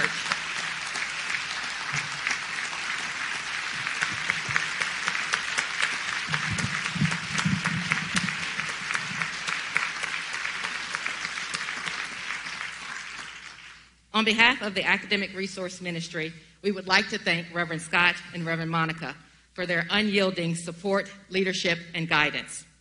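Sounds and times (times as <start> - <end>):
crowd applauding: 0.0 - 13.9
speech: 14.2 - 22.7.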